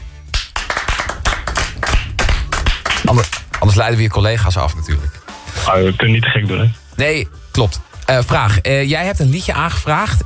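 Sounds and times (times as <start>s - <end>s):
gentle applause from a small group: 0.3s - 3.9s
speech: 3.1s - 10.2s.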